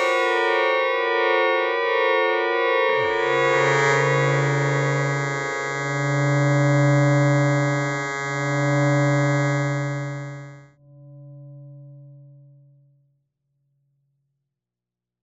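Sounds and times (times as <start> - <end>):
fat modular synthesizer: 0.0 - 10.6.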